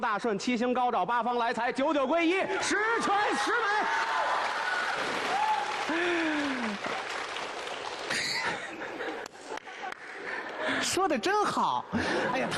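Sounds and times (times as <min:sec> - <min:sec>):
speech: 0:00.0 - 0:04.3, 0:10.8 - 0:12.5
audience applause: 0:03.4 - 0:10.0
laughter: 0:05.9 - 0:07.2, 0:08.0 - 0:10.8, 0:11.9 - 0:12.5.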